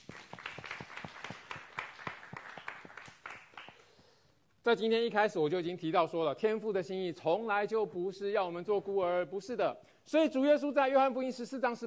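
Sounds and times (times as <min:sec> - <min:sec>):
crowd clapping hands: 0:00.0 - 0:03.9
speech: 0:04.7 - 0:11.8.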